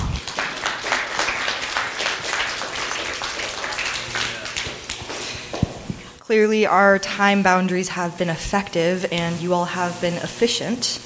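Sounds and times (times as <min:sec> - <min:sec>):
audience applause: 0:00.0 - 0:05.1
speech: 0:06.3 - 0:11.0.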